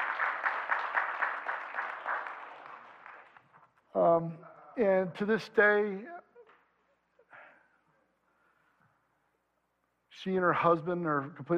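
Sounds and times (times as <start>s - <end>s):
clapping: 0.0s - 3.7s
speech: 3.9s - 6.1s, 10.2s - 11.5s.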